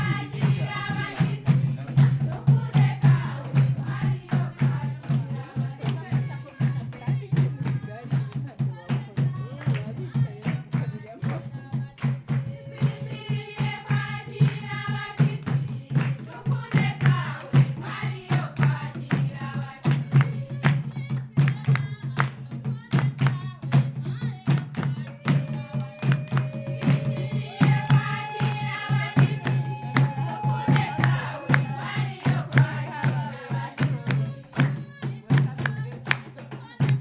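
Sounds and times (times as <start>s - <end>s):
coffee farmer woman singing while dancing: 0.0s - 36.9s
rhythmic percussive beats: 0.0s - 36.9s.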